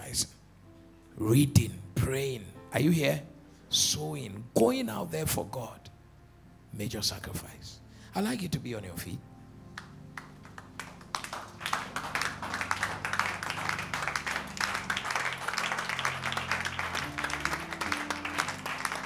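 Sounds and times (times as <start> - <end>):
speech: 0.1 - 0.4, 1.2 - 5.9, 6.8 - 9.3
audience clapping: 9.7 - 19.0.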